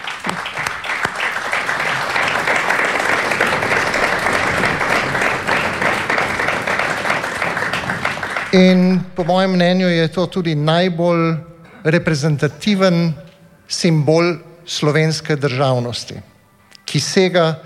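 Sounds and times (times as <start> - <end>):
audience applause: 0.0 - 9.7
speech: 8.5 - 16.3, 16.9 - 17.6.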